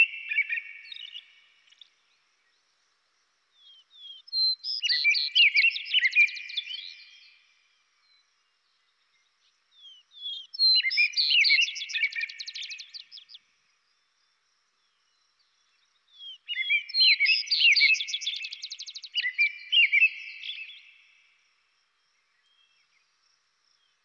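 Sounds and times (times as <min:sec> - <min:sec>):
robin singing: 0:00.0 - 0:02.1, 0:03.6 - 0:07.4, 0:08.9 - 0:13.4, 0:14.9 - 0:21.2
vesper sparrow singing: 0:03.6 - 0:07.3, 0:09.8 - 0:13.4, 0:16.2 - 0:21.0.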